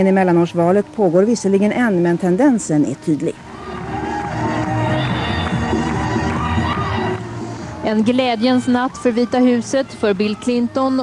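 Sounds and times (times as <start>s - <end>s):
speech: 0.0s - 3.5s, 7.9s - 11.0s
crowd cheering and shouting at election night party: 3.4s - 11.0s.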